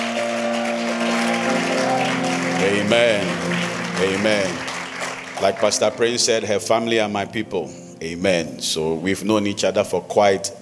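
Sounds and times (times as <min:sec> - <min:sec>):
crowd applause: 0:00.0 - 0:06.6
sustained low musical tones: 0:00.0 - 0:10.6
speech: 0:02.6 - 0:04.6, 0:05.4 - 0:10.6.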